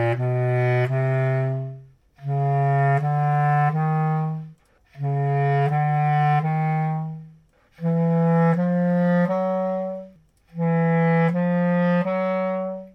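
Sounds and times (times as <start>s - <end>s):
clarinet with Legere EC bass and Tenor FC reeds: 0.0s - 12.9s.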